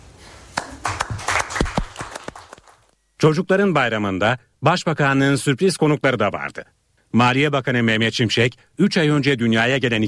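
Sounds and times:
small group applauding: 0:00.5 - 0:02.9
speech: 0:03.2 - 0:10.0.

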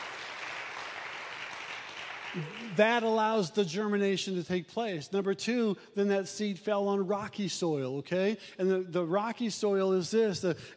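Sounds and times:
audience clapping: 0:00.0 - 0:03.1
speech: 0:02.3 - 0:10.7.

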